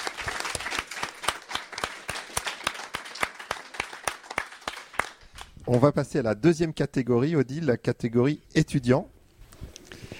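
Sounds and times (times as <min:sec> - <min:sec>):
audience applause: 0:00.0 - 0:05.5
speech: 0:05.7 - 0:09.1.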